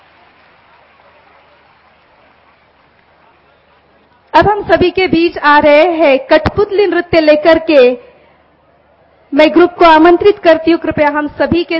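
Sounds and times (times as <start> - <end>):
audience applause: 0.0 - 4.3
speech: 4.4 - 8.1, 9.3 - 11.7.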